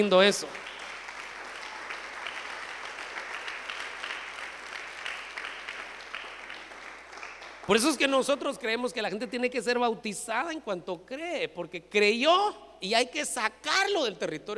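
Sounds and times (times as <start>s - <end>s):
speech: 0.0s - 0.7s, 7.7s - 14.5s
audience applause: 0.5s - 8.1s.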